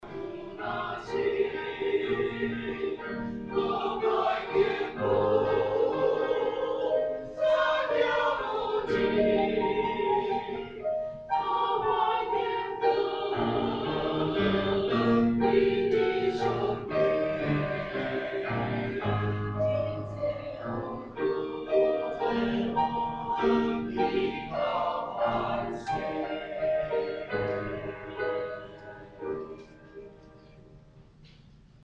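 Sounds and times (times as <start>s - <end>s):
choir singing: 0.0s - 30.6s.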